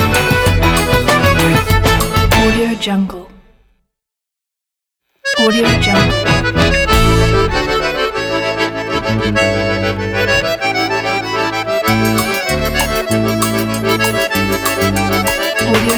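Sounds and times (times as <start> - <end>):
accordion playing forro: 0.0 - 2.7, 5.3 - 15.9.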